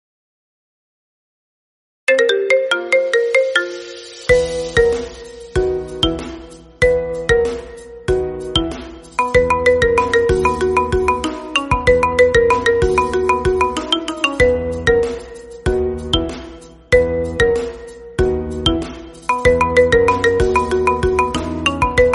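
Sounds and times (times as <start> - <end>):
marimba ringtone: 2.1 - 22.1.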